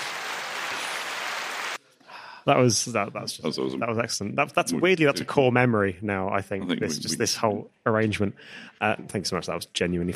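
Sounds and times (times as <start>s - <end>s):
applause sound effect from clap button: 0.0s - 1.8s
speech: 2.4s - 10.1s.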